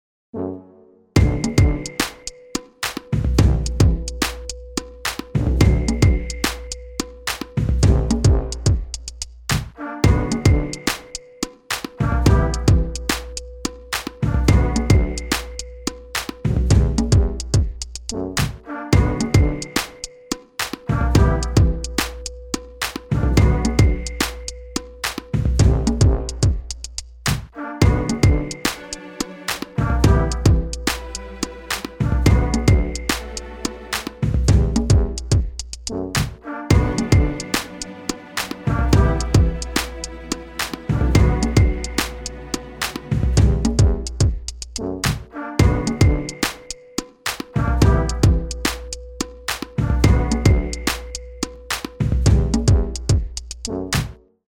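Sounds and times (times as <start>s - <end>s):
brass bed music: 0.3s - 54.4s.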